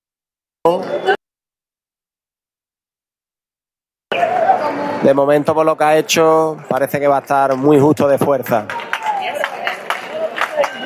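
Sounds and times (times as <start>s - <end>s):
speech: 0.6s - 1.2s, 5.0s - 8.8s
murmur of voices: 4.1s - 10.8s
bullring crowd clapping: 5.4s - 10.8s.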